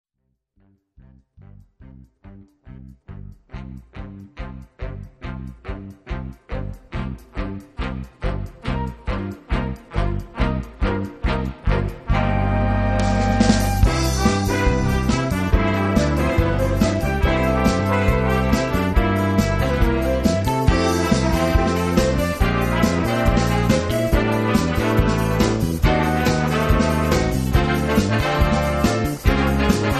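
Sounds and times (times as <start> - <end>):
bossa jazz orchestra: 3.5 - 29.9.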